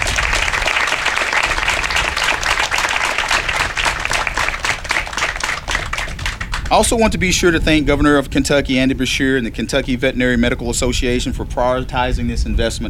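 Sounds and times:
audience applause: 0.0s - 7.0s
speech: 6.7s - 12.8s.

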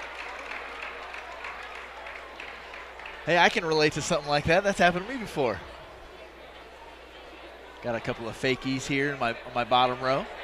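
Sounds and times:
arena crowd applauding injured hockey player: 0.0s - 5.6s
speech: 3.2s - 5.8s, 7.8s - 10.4s.

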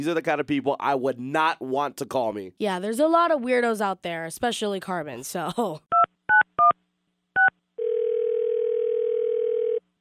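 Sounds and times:
speech: 0.0s - 6.0s
steady telephone tone: 7.8s - 9.8s.

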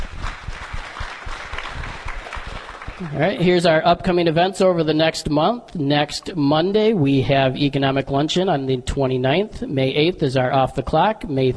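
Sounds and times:
audience applause: 0.0s - 3.4s
speech: 3.0s - 11.5s.

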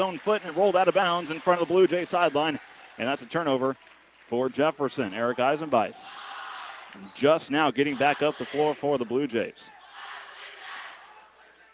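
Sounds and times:
packed crowd cheering at a college basketball game at Jefferson College: 0.0s - 3.5s, 5.0s - 11.7s
speech: 0.0s - 6.3s, 7.0s - 9.8s.

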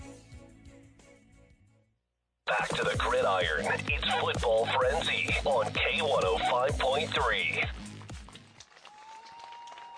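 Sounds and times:
speech: 2.7s - 7.8s
crowd clapping at a football game: 5.5s - 9.9s.

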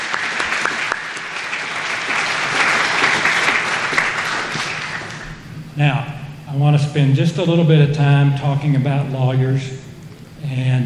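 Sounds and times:
audience applause: 0.0s - 5.4s
speech: 5.8s - 10.8s.

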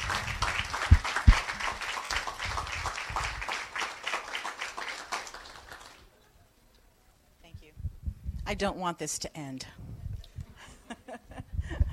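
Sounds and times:
audience applause: 0.0s - 6.1s
speech: 8.5s - 9.9s
laughter: 10.6s - 11.9s.

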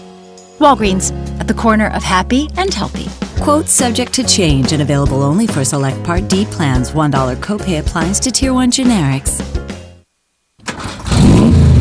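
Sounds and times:
speech: 0.6s - 9.6s
turbocharged car engine revving: 10.7s - 11.7s.

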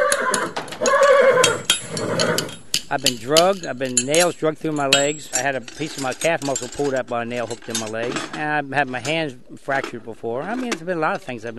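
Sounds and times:
thoroughbred racehorse whinnying: 0.0s - 2.7s
speech: 2.9s - 11.5s.

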